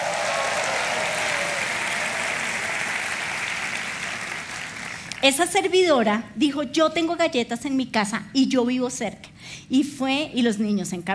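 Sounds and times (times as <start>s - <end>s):
church audience applause: 0.0s - 5.2s
speech: 5.2s - 11.1s.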